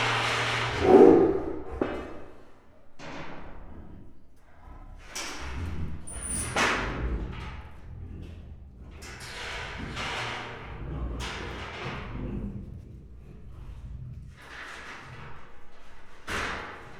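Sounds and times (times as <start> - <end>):
Bengal tiger: 0.1 - 16.9.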